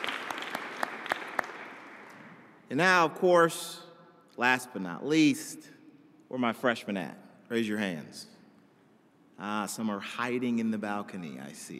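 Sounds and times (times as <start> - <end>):
audience applause: 0.0 - 2.1
speech: 2.7 - 3.8, 4.4 - 5.7, 6.3 - 8.3, 9.4 - 11.7.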